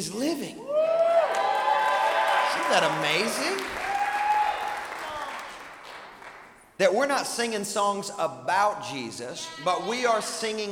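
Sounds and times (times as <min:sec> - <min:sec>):
speech: 0:00.0 - 0:01.1, 0:02.6 - 0:03.9, 0:06.8 - 0:10.6
crowd applauding: 0:00.8 - 0:06.6.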